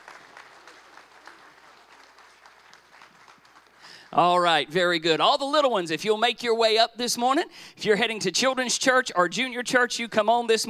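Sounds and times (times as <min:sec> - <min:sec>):
audience applauding: 0:00.0 - 0:04.1
speech: 0:04.1 - 0:10.6.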